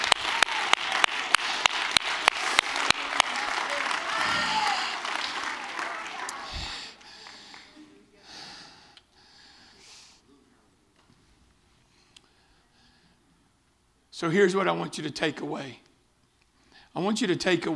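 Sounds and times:
audience clapping hands: 0.0s - 8.0s
speech: 14.2s - 15.8s, 17.0s - 17.7s.

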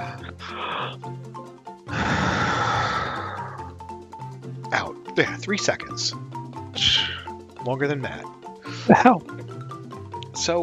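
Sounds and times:
group of people breathing in deeply together on cue: 1.9s - 3.6s
speech: 5.2s - 6.2s, 6.8s - 9.5s, 10.4s - 10.6s.

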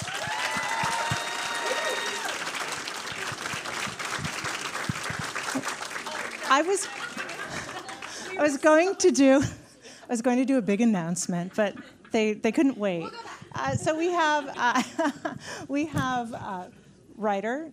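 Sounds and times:
faint whoops: 0.0s - 2.4s
large audience applause: 0.0s - 8.4s
speech: 6.5s - 7.1s, 8.4s - 17.7s.

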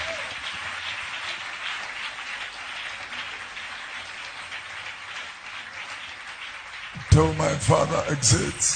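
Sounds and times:
audience clapping: 0.0s - 8.7s
speech: 7.0s - 8.7s.

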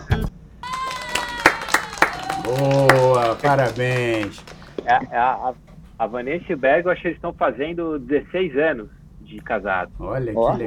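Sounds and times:
applause sound effect: 0.6s - 4.9s
speech: 2.5s - 10.6s.

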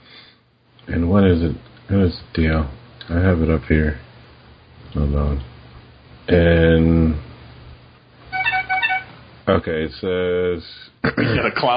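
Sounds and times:
faint hiss: 0.0s - 11.7s
speech: 0.9s - 4.1s, 4.9s - 5.5s, 6.3s - 7.3s, 9.5s - 11.7s
phone text message alert chime: 8.3s - 9.2s.

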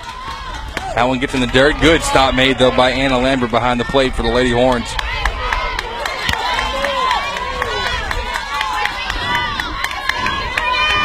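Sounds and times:
sharp scattered clapping by softball fans: 0.0s - 1.9s, 4.5s - 11.0s
softball fans cheering and shouting: 0.0s - 11.0s
speech: 1.0s - 5.2s.

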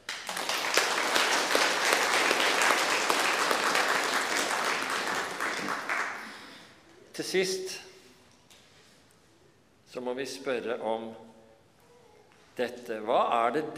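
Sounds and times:
audience applause: 0.0s - 6.6s
speech: 7.2s - 7.9s, 10.0s - 11.3s, 12.6s - 13.7s.

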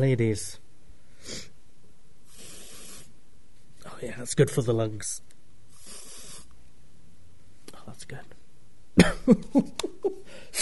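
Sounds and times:
speech: 0.0s - 0.6s, 1.2s - 1.5s, 4.0s - 5.3s, 7.9s - 8.4s, 9.0s - 10.5s
aerosol body spray hissing: 2.3s - 3.2s, 5.7s - 6.5s.

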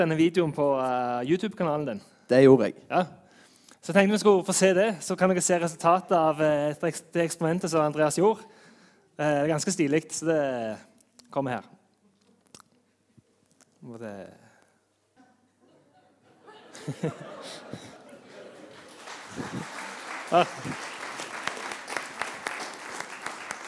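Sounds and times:
speech: 0.0s - 3.2s, 3.8s - 11.8s, 13.8s - 14.4s, 16.8s - 17.9s, 19.4s - 20.9s
laughter: 15.2s - 19.0s
audience applause: 17.4s - 23.6s.

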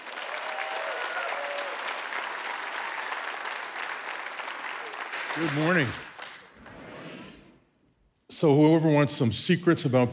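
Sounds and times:
applause at Life Church welcoming a guest speaker: 0.0s - 6.8s
speech: 5.4s - 6.1s, 8.4s - 10.1s.

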